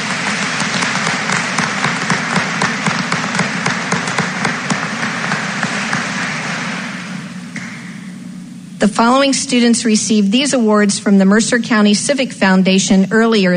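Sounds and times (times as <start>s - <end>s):
audience applause for scholarship winners: 0.0s - 7.9s
speech: 8.8s - 13.5s.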